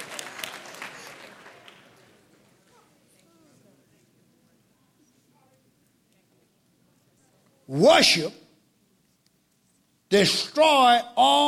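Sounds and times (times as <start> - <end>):
audience clapping: 0.0 - 2.7
speech: 7.7 - 8.4, 10.1 - 11.4.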